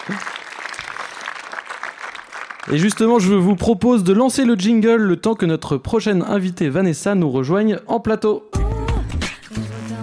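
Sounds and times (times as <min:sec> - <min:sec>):
studio audience applause on a French entertainment show: 0:00.0 - 0:03.6
speech: 0:02.6 - 0:08.5.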